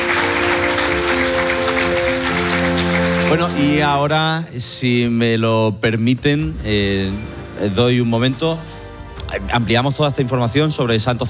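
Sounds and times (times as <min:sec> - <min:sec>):
audience applause: 0:00.0 - 0:04.2
speech: 0:03.3 - 0:11.2.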